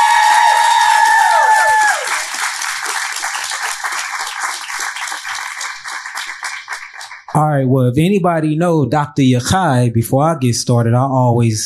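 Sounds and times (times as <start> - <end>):
audience applause: 0.0 - 7.4
speech: 7.6 - 11.6.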